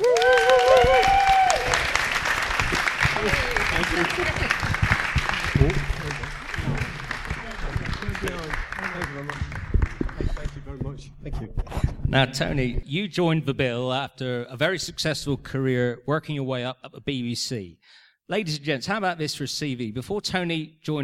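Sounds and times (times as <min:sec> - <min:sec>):
whoops and cheers: 0:00.0 - 0:02.0
audience applause: 0:00.0 - 0:10.9
speech: 0:12.2 - 0:21.0.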